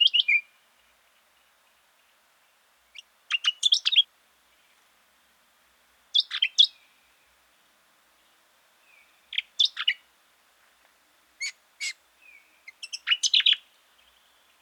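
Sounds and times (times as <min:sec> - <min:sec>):
brown honeyeater calling: 0:02.9 - 0:04.1, 0:06.2 - 0:06.8, 0:09.3 - 0:10.0, 0:11.4 - 0:13.7.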